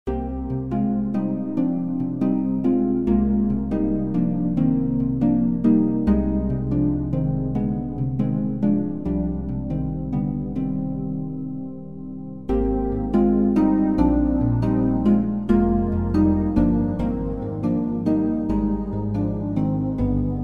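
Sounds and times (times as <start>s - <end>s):
Wurlitzer electric piano wonderharp in C: 0.1s - 20.4s.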